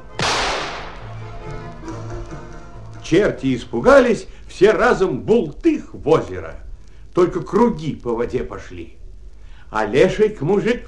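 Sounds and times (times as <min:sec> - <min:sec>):
shotgun firing: 0:00.2 - 0:01.2
speech: 0:03.1 - 0:06.6, 0:07.2 - 0:09.0, 0:09.7 - 0:10.8.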